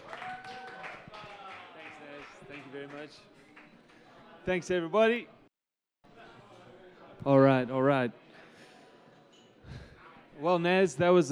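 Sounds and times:
audience round of applause: 0.0s - 3.7s
speech: 2.8s - 3.4s, 4.4s - 5.4s, 7.2s - 8.2s, 10.4s - 11.3s.

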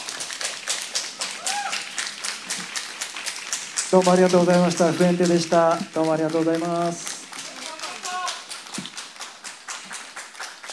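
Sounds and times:
audience clapping: 0.0s - 10.7s
faint voices cheering: 1.4s - 1.9s
speech: 3.9s - 7.1s.

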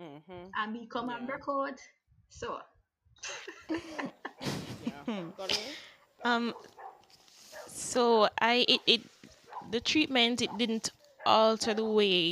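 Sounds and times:
lively conversation and laughter: 0.4s - 12.2s
speech: 0.6s - 6.8s, 7.7s - 12.2s
dog barking: 6.2s - 7.8s, 9.3s - 9.7s, 10.4s - 12.2s.

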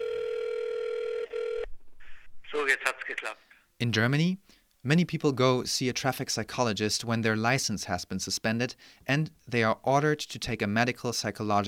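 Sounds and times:
telephone ringing tone: 0.0s - 1.7s
speech: 2.6s - 11.6s.

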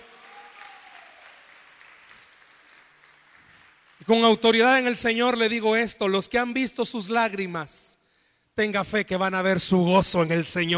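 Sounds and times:
audience applause: 0.0s - 4.1s
speech: 4.0s - 7.9s, 8.6s - 10.7s.

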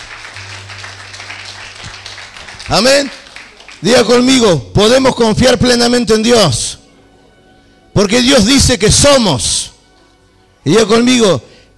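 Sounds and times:
audience applause: 0.0s - 4.2s
speech: 2.7s - 3.2s, 3.8s - 6.7s, 8.0s - 9.7s, 10.6s - 11.5s.

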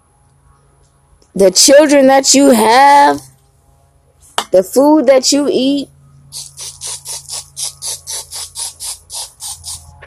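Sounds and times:
speech: 1.3s - 3.3s, 4.5s - 6.5s
spray being sprayed: 6.3s - 9.9s.

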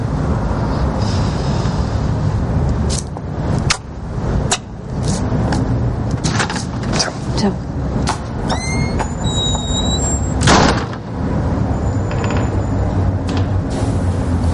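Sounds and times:
steady rumble of street traffic: 0.0s - 14.5s
speech: 7.4s - 7.6s
building door squeaking open: 8.4s - 10.5s, 11.8s - 12.9s.

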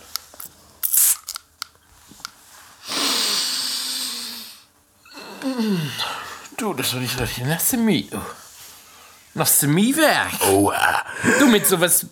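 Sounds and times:
spraying mist from a spray bottle: 0.8s - 1.4s
speech: 5.5s - 8.4s, 9.4s - 12.1s.

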